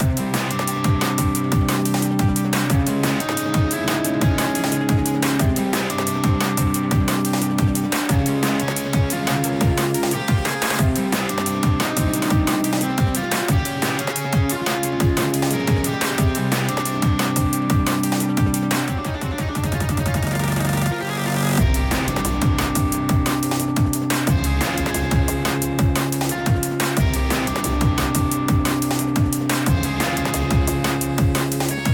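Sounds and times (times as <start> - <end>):
in-game background music: 0.0 - 31.9.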